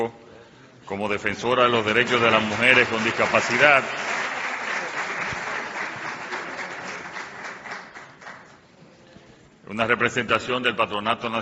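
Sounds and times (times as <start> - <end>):
speech: 0.9 - 4.1, 9.7 - 11.4
audience applause: 1.7 - 8.5.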